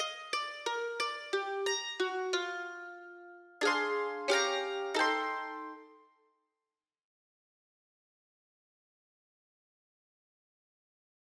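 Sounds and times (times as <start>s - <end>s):
mixed pentatonic melody: 0.2s - 6.0s.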